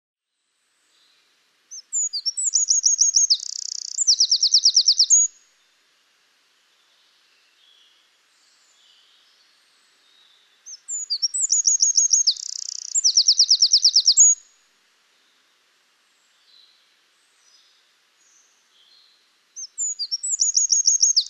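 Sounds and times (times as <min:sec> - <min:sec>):
Eurasian wren trilling song: 0:01.7 - 0:05.3, 0:10.1 - 0:14.4, 0:17.4 - 0:21.2.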